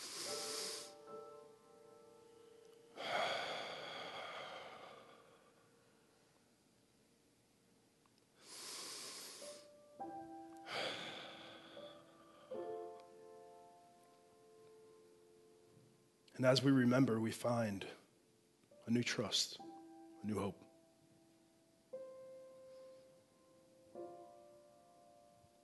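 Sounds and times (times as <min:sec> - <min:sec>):
deep breaths taken during a guided meditation: 0:00.0 - 0:01.3, 0:03.0 - 0:06.2, 0:08.4 - 0:09.8, 0:10.6 - 0:12.9
faint musical tones: 0:00.0 - 0:06.6, 0:09.4 - 0:25.6
speech: 0:16.4 - 0:18.0, 0:18.9 - 0:20.7.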